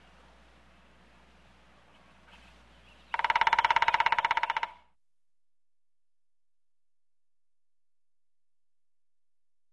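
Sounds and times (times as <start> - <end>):
woodpecker drumming in a forest: 3.0 - 5.0.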